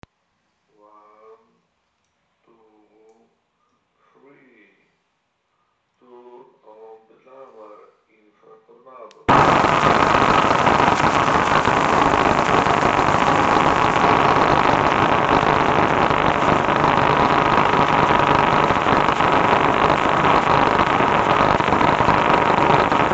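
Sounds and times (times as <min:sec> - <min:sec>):
INFRATORNADO audio jammer noise against HTC ONE M8: 0:09.2 - 0:23.1.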